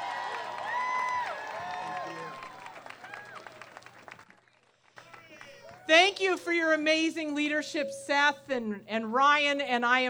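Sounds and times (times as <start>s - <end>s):
audience applause: 0.0s - 5.9s
speech: 5.9s - 10.0s.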